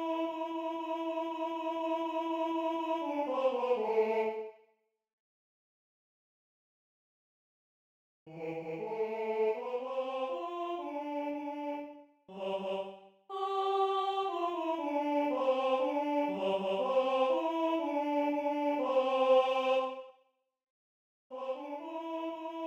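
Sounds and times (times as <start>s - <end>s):
first tenor voice singing: 0.0s - 4.4s, 8.3s - 20.0s, 21.3s - 22.6s.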